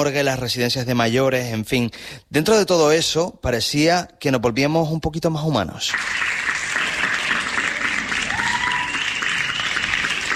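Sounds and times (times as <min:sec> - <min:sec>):
speech: 0:00.0 - 0:06.6
recorded balcony applause in Santa Cruz de Tenerife: 0:05.8 - 0:10.3.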